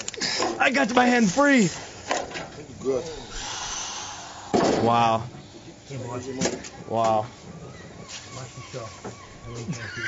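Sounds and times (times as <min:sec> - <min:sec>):
speech: 0:00.6 - 0:01.9, 0:02.8 - 0:03.2, 0:04.8 - 0:07.5, 0:08.6 - 0:10.0
seagulls calling in the background: 0:05.4 - 0:10.0.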